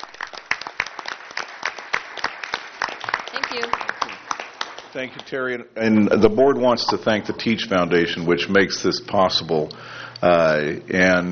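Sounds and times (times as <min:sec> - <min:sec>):
audience applause: 0:00.0 - 0:05.3
speech: 0:05.0 - 0:11.2.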